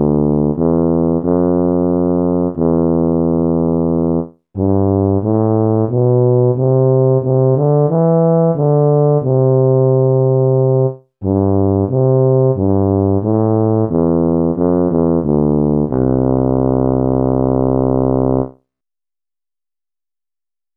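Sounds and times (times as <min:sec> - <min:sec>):
tuba playing carols: 0:00.0 - 0:18.5.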